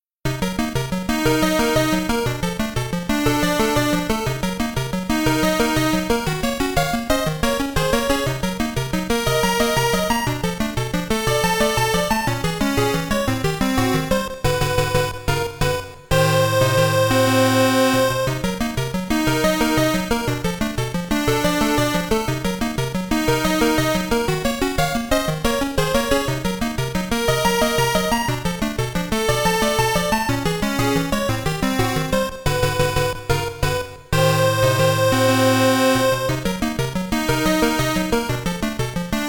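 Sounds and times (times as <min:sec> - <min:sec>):
game background music: 0:00.3 - 0:39.2.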